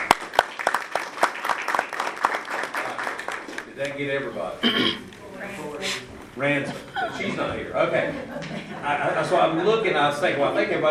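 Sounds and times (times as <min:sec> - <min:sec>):
round of applause: 0:00.0 - 0:03.8
speech: 0:03.8 - 0:10.9
laughter: 0:06.6 - 0:09.6.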